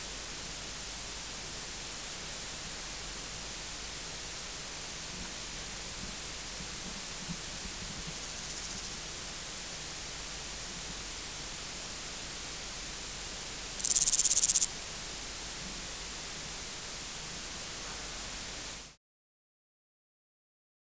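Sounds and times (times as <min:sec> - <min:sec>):
hiss: 0:00.0 - 0:19.0
Omocestus bolivari grasshopper buzzy burst: 0:07.6 - 0:18.9.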